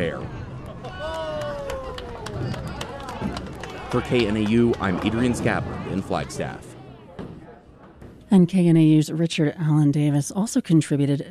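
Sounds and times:
birthday girl and family applauding at a bowling alley: 0.5 - 6.8
speech: 3.9 - 6.7, 8.3 - 11.2.

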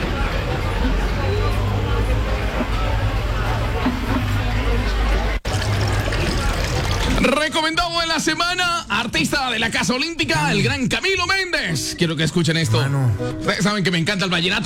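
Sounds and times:
crowd chatter: 0.0 - 7.4
drink poured into a glass: 5.4 - 7.4
speech: 8.2 - 14.6.

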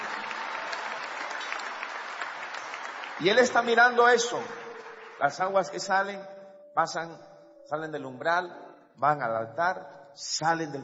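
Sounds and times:
audience applause: 0.0 - 5.7
speech: 3.2 - 4.6, 5.2 - 10.8.

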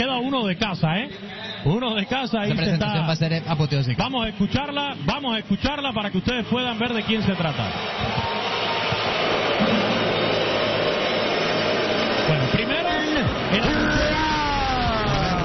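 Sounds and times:
speech: 0.0 - 8.3, 12.3 - 14.4
stadium crowd booing: 4.0 - 15.4.

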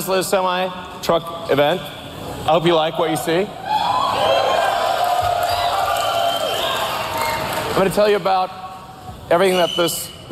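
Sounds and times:
speech: 0.0 - 4.0, 7.8 - 8.6, 9.3 - 10.2
large crowd cheering and whooping at truck unveiling event: 3.6 - 7.8
applause: 4.8 - 7.8.

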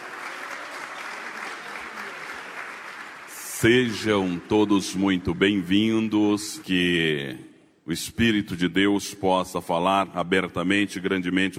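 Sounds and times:
audience clapping hands: 0.0 - 6.8
speech: 3.6 - 11.5.

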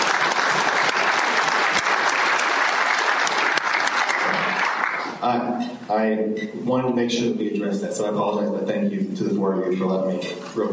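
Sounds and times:
group round of applause: 0.0 - 5.3
speech: 5.2 - 10.7.

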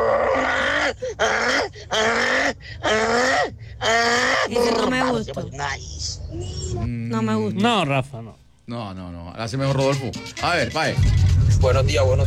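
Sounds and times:
person's voice imitating a braying donkey: 0.0 - 5.3
speech: 4.5 - 12.2.

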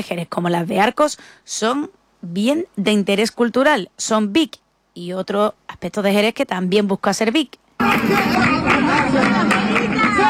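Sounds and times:
speech: 0.0 - 10.2
crowd murmur outside the Peña La Bulería flamenco club in Jerez: 7.8 - 10.2.

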